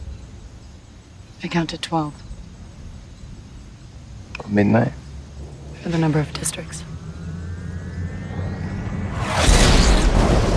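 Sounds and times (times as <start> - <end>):
speech: 1.4 - 2.3, 4.4 - 5.0, 5.8 - 6.9
distant lightning strike: 5.4 - 10.5
thunder: 5.4 - 10.5.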